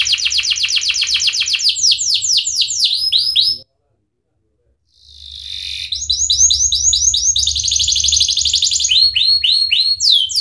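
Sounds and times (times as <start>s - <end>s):
Atlantic canary singing: 0.0s - 3.6s, 4.9s - 10.3s
low hum: 4.2s - 10.3s.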